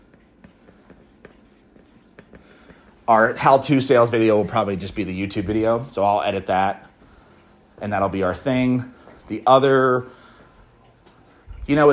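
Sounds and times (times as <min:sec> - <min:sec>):
pen or pencil writing by hand: 0:00.0 - 0:02.7
speech: 0:03.1 - 0:06.9, 0:07.8 - 0:10.2, 0:11.7 - 0:11.9.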